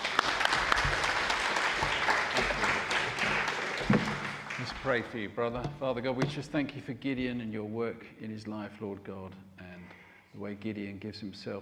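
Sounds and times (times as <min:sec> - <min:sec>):
congregation applause in a church: 0:00.0 - 0:05.7
speech: 0:04.8 - 0:09.5, 0:10.4 - 0:11.6.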